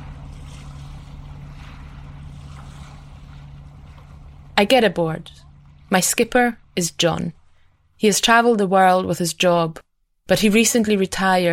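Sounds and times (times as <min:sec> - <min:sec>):
water wash: 0:00.0 - 0:07.9
boat approaching an island jetty: 0:00.0 - 0:08.4
speech: 0:04.6 - 0:07.4, 0:08.0 - 0:11.5.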